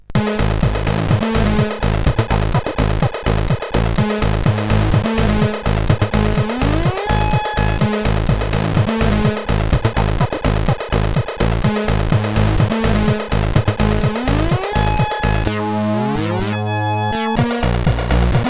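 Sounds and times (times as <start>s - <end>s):
SID CSG8580R5 chip intro music: 0.2s - 18.4s.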